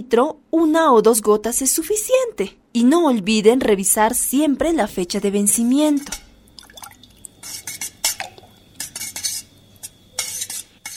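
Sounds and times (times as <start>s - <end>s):
speech: 0.0s - 6.2s
clean spoon stirring water in jar: 6.0s - 10.9s.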